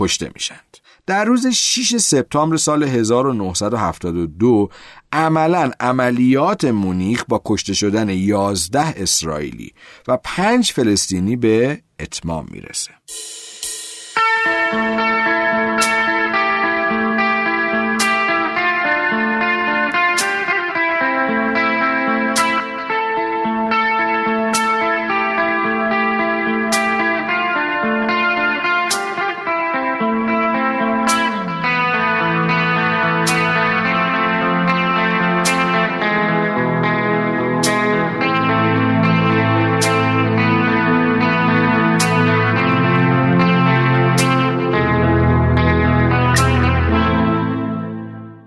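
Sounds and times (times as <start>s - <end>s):
speech: 0.0s - 13.4s
instrumental band music: 13.1s - 48.2s.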